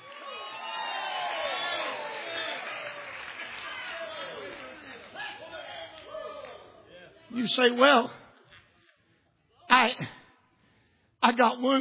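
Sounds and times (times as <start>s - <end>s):
audience shouting and cheering: 0.0s - 7.5s
speech: 7.4s - 8.2s, 11.4s - 11.7s.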